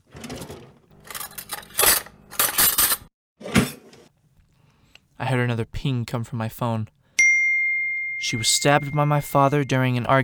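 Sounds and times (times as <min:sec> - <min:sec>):
kitchen drawer opening: 0:00.0 - 0:04.1
speech: 0:05.2 - 0:07.0, 0:08.2 - 0:10.2.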